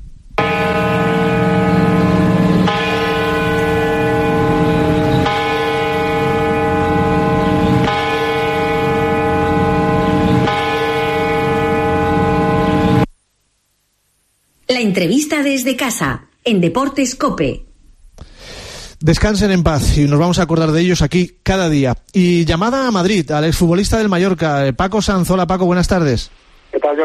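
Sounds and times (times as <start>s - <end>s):
solemn mourning bell tolling: 0.4s - 13.1s
speech: 14.8s - 17.7s, 19.0s - 27.0s.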